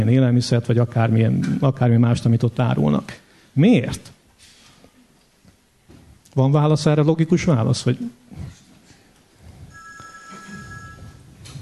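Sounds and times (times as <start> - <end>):
speech: 0.0 - 4.2, 6.4 - 8.6
low hiss: 0.0 - 11.6
telephone ringing for a phone-a-friend call: 9.7 - 11.3.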